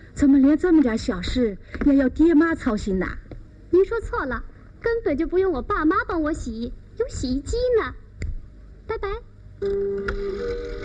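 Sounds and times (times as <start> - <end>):
speech: 0.2 - 8.0, 8.9 - 10.8
telephone ringing: 9.6 - 10.8.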